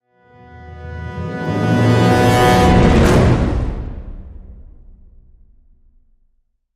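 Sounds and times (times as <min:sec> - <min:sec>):
orchestral brass hit: 0:00.2 - 0:05.4.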